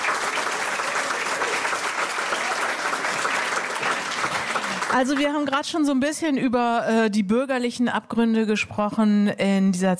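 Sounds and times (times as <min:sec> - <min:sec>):
applause: 0:00.0 - 0:05.9
speech: 0:04.9 - 0:09.9.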